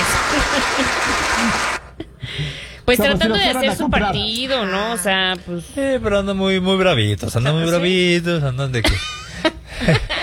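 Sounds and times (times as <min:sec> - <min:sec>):
studio production crew applauding: 0:00.0 - 0:01.9
laughter: 0:00.0 - 0:02.2, 0:08.9 - 0:10.2
speech: 0:00.7 - 0:01.8, 0:02.9 - 0:09.2.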